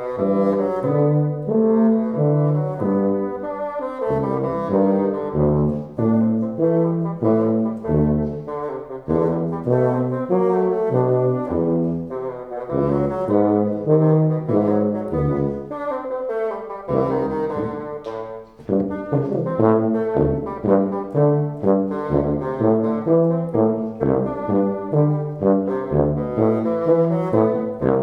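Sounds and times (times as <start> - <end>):
bassoon: 0.0 - 28.0
cello: 0.0 - 28.0.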